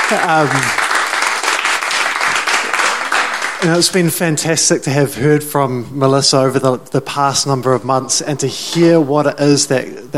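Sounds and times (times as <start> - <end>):
audience applause: 0.0 - 4.0
speech: 0.1 - 0.8, 3.6 - 10.1.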